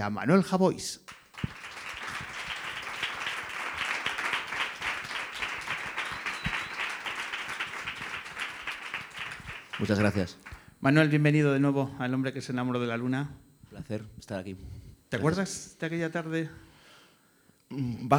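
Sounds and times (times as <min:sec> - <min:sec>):
speech: 0:00.0 - 0:01.8, 0:09.8 - 0:16.7, 0:17.7 - 0:18.1
audience applause for arriving guest: 0:01.1 - 0:10.7.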